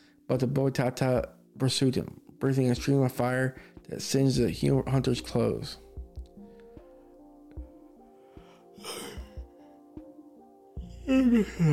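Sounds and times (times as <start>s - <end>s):
speech: 0.3s - 5.8s, 11.1s - 11.7s
yawning: 10.9s - 11.7s.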